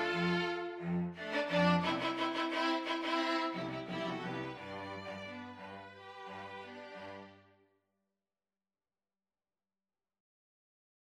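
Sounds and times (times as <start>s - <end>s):
string quintet playing: 0.0s - 7.6s.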